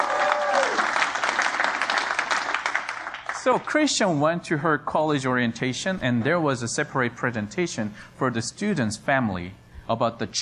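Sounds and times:
audience applause congratulating a student: 0.0s - 3.7s
speech: 3.4s - 10.3s.

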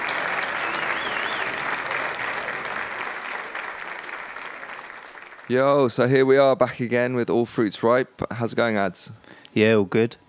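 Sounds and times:
audience applause: 0.0s - 5.6s
speech: 5.5s - 10.2s.

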